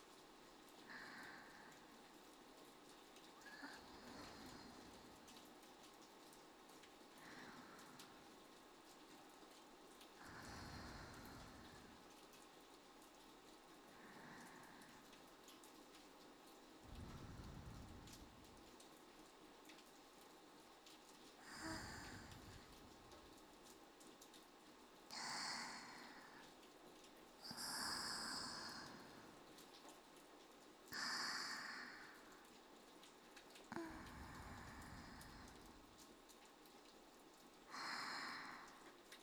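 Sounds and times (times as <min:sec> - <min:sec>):
rain: 0:00.0 - 0:39.2
sleep breathing loop for ASMR: 0:03.4 - 0:05.4, 0:10.2 - 0:12.1, 0:16.8 - 0:18.6, 0:21.4 - 0:23.2, 0:25.1 - 0:26.5, 0:27.4 - 0:29.4, 0:30.9 - 0:32.5, 0:33.7 - 0:36.0, 0:37.7 - 0:38.9.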